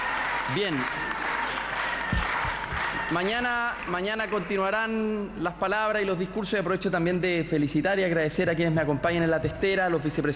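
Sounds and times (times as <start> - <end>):
applause in parliament chamber: 0.0 - 5.2
speech: 0.5 - 1.6, 2.7 - 10.3.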